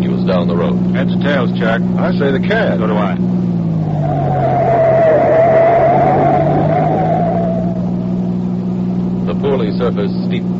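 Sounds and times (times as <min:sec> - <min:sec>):
sedan engine roaring at high revs: 0:00.0 - 0:10.5
speech: 0:00.3 - 0:03.4, 0:09.4 - 0:10.5
tires scraping on loose gravel: 0:03.8 - 0:08.2.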